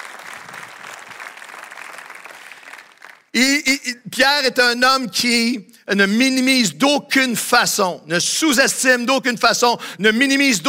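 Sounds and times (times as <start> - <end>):
audience applause: 0.0 - 3.3
speech: 3.4 - 10.6.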